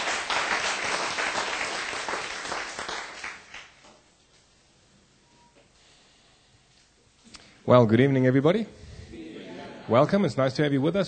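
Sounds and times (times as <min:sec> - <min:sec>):
congregation clapping at an evening church service: 0:00.0 - 0:03.8
speech: 0:07.7 - 0:08.8, 0:09.9 - 0:11.0.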